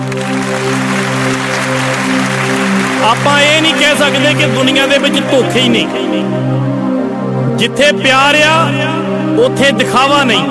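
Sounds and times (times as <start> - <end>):
audience at a Punjabi gathering clapping: 0.0 - 6.0
speech: 3.0 - 6.7, 7.6 - 10.4.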